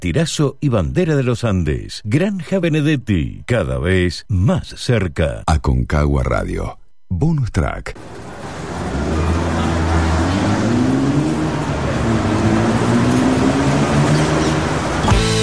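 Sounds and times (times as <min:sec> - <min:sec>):
speech: 0:00.0 - 0:08.6
vehicle engine starting at the opening of a song: 0:08.0 - 0:15.4.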